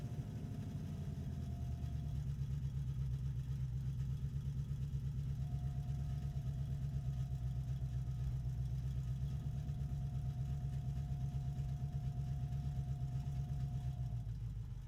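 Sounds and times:
1972 De Tomaso Pantera BMW Alpina V8 engine starting, driving and shutting down: 0:00.0 - 0:14.8.

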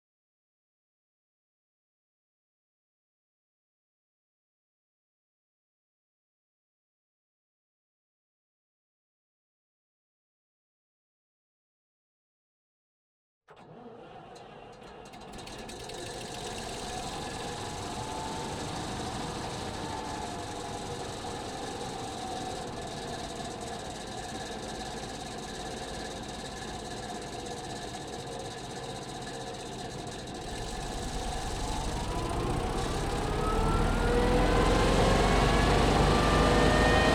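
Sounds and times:
Jagdpanzer 38(t) Hetzer tank engine driving, onboard, 1944: 0:13.6 - 0:37.1.

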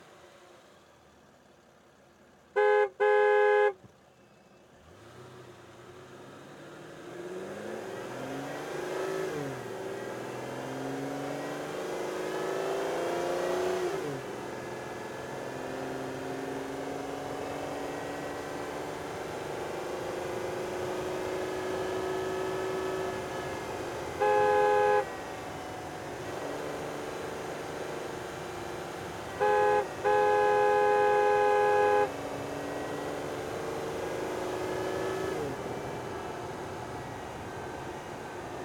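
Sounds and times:
2005 Aston Martin DB9 engine onboard: 0:00.0 - 0:38.6
2005 Aston Martin DB9 horn: 0:02.5 - 0:03.9, 0:20.9 - 0:25.6, 0:29.0 - 0:32.5.

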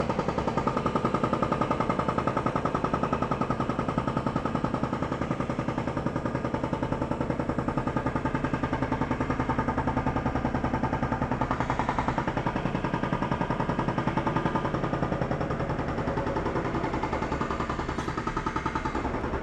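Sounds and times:
hydraulic jackhammer at a street construction site: 0:00.0 - 0:19.4.

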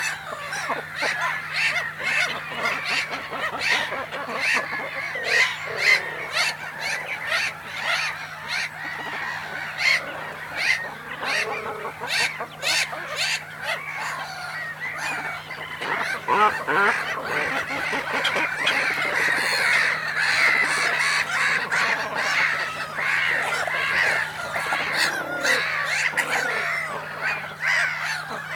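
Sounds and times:
harsh rasping cormorant calls at the nest: 0:00.0 - 0:28.5.

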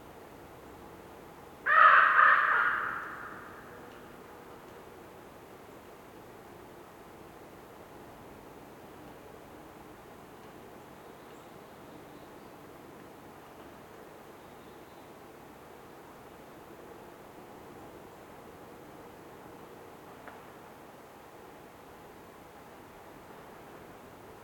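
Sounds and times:
raven croaking in a winter forest in North Laurentian Woods Canada: 0:01.7 - 0:03.9.

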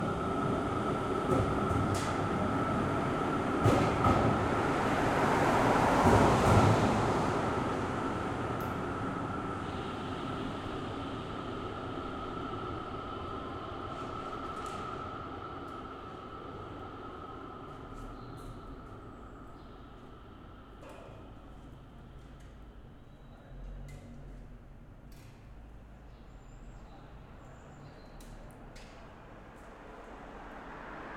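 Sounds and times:
bus in a city at night: 0:00.0 - 0:31.1
tram in a city at night: 0:00.0 - 0:31.1
cars passing under a bridge in a city at night: 0:00.3 - 0:14.5, 0:29.6 - 0:31.1.

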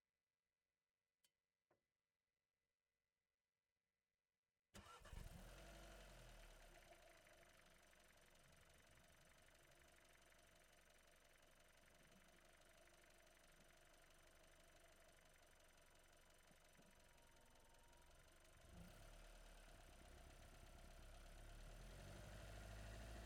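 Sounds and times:
VW Golf starting, driving, reversing and stopping onboard: 0:04.8 - 0:07.3, 0:18.6 - 0:23.2.

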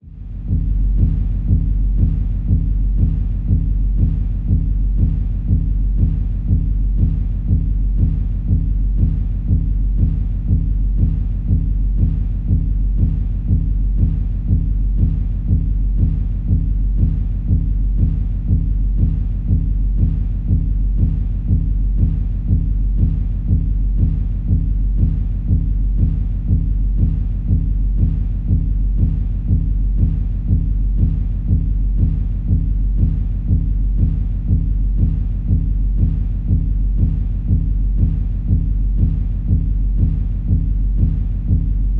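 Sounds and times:
complex cinematic sci-fi bass: 0:00.0 - 0:41.9.

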